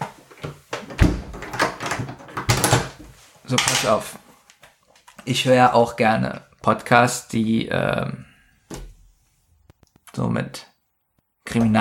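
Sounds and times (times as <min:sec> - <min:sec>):
door knocks and thuds as a comic sound-effect gag: 0:00.9 - 0:03.0
speech: 0:03.5 - 0:04.2, 0:05.3 - 0:08.3, 0:10.2 - 0:10.7, 0:11.5 - 0:11.7.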